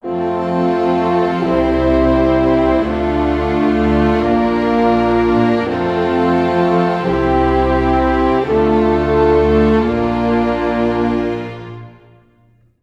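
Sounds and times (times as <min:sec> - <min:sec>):
orchestral arrangement in F major at 85 bpm: 0:00.0 - 0:12.6.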